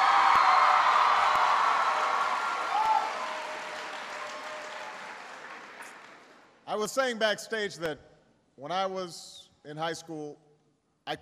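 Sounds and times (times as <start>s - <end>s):
crowd applauding: 0.0s - 6.5s
speech: 6.8s - 10.5s.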